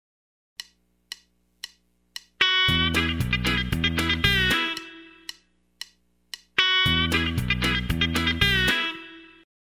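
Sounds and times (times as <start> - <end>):
country rock music: 2.4 - 5.1, 6.6 - 9.3.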